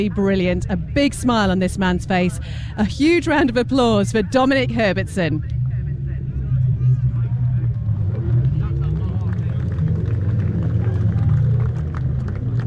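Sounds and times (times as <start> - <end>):
speech: 0.0 - 5.6
murmur of crowd voices: 0.0 - 12.6
racing sidecars roaring around the track: 0.0 - 12.6.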